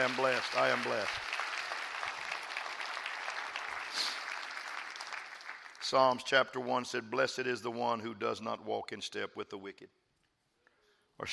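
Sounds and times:
speech: 0.0 - 1.4, 5.9 - 10.0, 11.2 - 11.3
audience clapping hands: 0.0 - 6.2.

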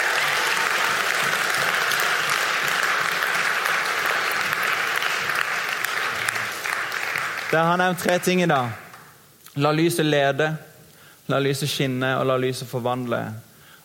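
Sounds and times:
audience applause: 0.0 - 9.1
speech: 7.5 - 8.8, 9.6 - 10.7, 11.3 - 13.5.

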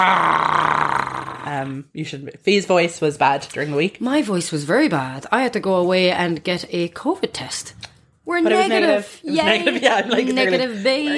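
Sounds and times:
speech: 0.0 - 0.5, 1.6 - 11.1
person imitating angry growl: 0.0 - 1.8.

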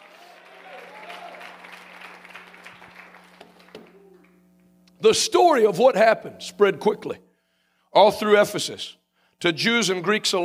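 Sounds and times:
voices shouting and cheering: 0.0 - 1.5
crowd clapping: 0.0 - 4.4
speech: 5.0 - 7.3, 8.0 - 10.4.

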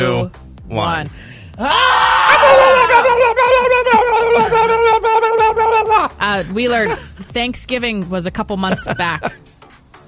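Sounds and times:
speech: 0.0 - 9.5
group of people screaming together: 1.6 - 6.1
laughter: 2.3 - 7.3, 8.6 - 9.4.

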